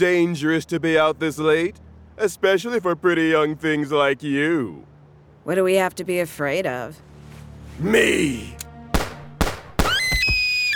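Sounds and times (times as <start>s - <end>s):
speech: 0.0s - 7.1s, 7.8s - 8.6s
gunshots in the dark: 9.0s - 10.4s
shrill wavering cry: 9.9s - 10.7s.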